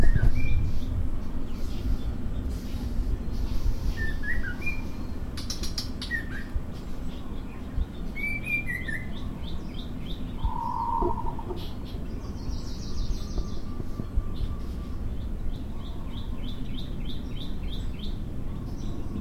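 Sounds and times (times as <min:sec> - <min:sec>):
morning birdsong: 0:00.0 - 0:19.1.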